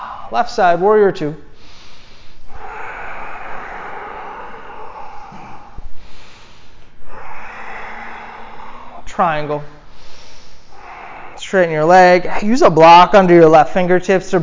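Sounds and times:
slow deep yoga breathing: 0.0s - 0.4s, 1.4s - 12.5s
speech: 0.3s - 1.5s, 9.2s - 9.8s, 11.5s - 14.4s.

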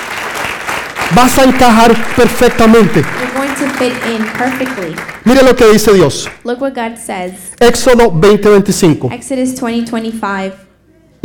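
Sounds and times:
audience applause: 0.0s - 6.4s
speech: 1.1s - 10.6s.

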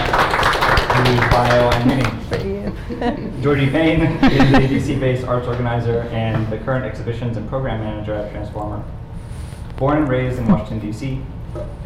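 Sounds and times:
audience applause: 0.0s - 2.3s
laughter: 0.9s - 5.2s
speech: 3.0s - 9.0s, 9.8s - 11.8s.

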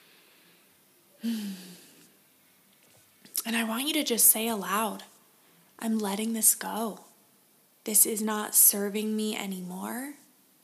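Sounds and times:
deep breath: 0.0s - 2.1s
speech: 1.2s - 1.7s, 3.5s - 5.1s, 5.8s - 7.1s, 7.9s - 10.2s.

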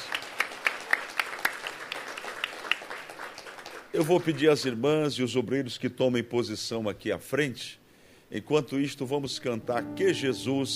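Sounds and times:
audience applauding: 0.0s - 4.6s
speech: 4.0s - 10.7s.

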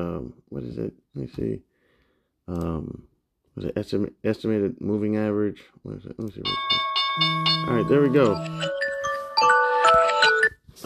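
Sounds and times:
speech: 0.0s - 1.7s, 2.5s - 8.8s
alarm chime: 6.4s - 10.6s.

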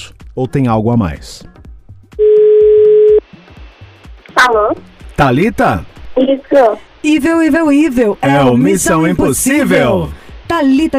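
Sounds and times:
speech: 0.0s - 1.6s, 4.4s - 10.9s
telephone dial tone of outgoing call: 2.2s - 3.2s.

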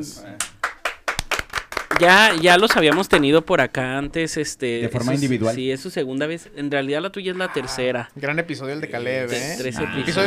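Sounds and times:
speech: 0.0s - 0.5s, 2.0s - 10.2s
applause: 0.4s - 3.3s.

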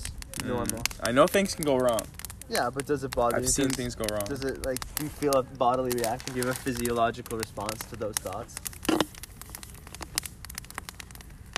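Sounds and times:
food sizzling: 0.0s - 10.9s
speech: 0.4s - 9.1s.

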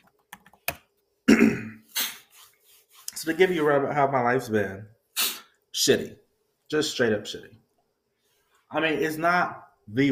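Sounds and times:
typing on a keyboard: 0.0s - 0.8s
speech: 3.2s - 5.0s, 5.8s - 7.6s, 8.7s - 10.0s.

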